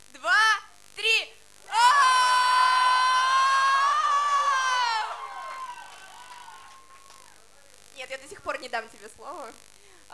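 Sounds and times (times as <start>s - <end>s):
crowd screaming: 1.7s - 7.4s
speech: 8.6s - 10.1s.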